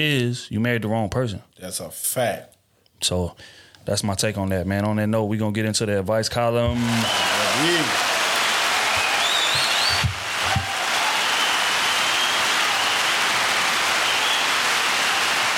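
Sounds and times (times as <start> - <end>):
speech: 0.0 - 8.2
clapping sound effect: 6.8 - 15.5.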